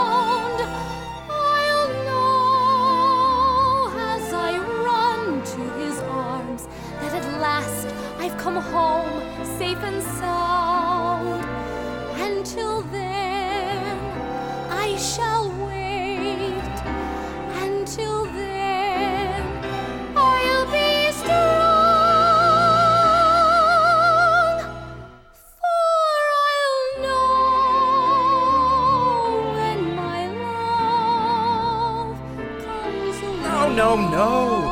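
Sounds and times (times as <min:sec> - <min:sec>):
vocals: 0:00.0 - 0:34.6.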